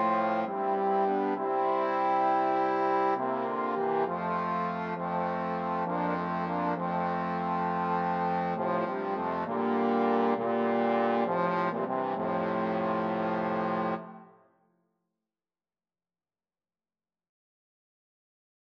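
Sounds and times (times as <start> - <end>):
trombone quartet playing a hymn: 0.0 - 14.2.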